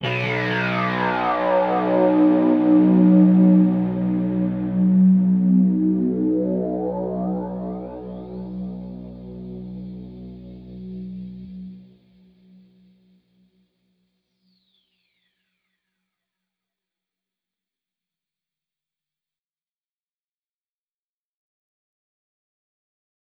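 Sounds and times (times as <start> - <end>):
overlay drone: 0.0 - 13.0.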